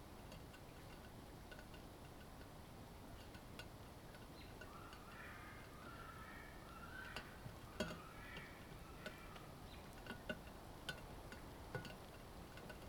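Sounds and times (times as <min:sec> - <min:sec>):
low rumble and hiss: 0:00.0 - 0:12.8
warbling bird calls in the eastern Parry Sound District of Ontario: 0:04.4 - 0:09.9.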